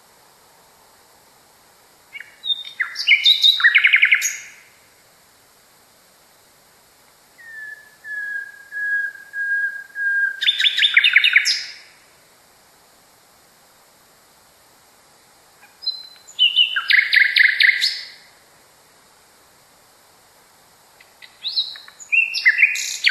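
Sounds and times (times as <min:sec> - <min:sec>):
nightingale singing: 0:02.1 - 0:04.9, 0:07.3 - 0:12.1, 0:15.6 - 0:18.4, 0:20.9 - 0:23.0.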